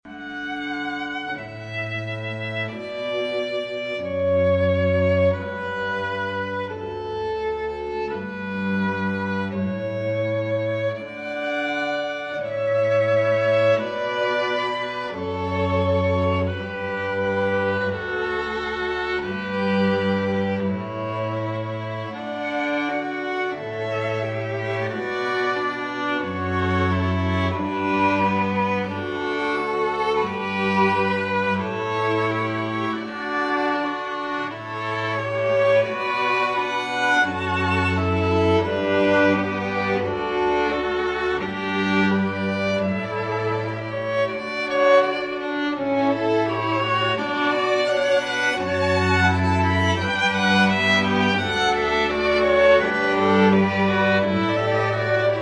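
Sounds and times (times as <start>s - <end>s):
strings: 0.0s - 55.4s.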